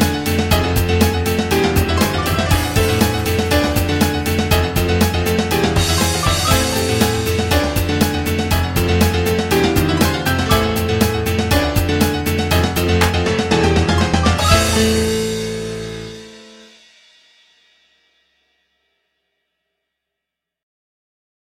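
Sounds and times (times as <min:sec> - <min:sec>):
jazz music: 0:00.0 - 0:16.9.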